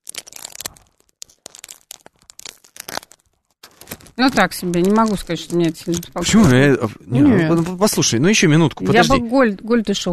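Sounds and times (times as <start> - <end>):
plastic crinkled and crushed in hands: 0.0 - 6.6
speech: 4.2 - 10.1.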